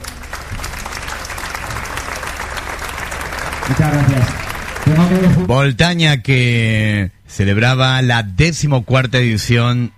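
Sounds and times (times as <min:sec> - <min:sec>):
audience applause: 0:00.0 - 0:05.5
speech: 0:03.7 - 0:09.9.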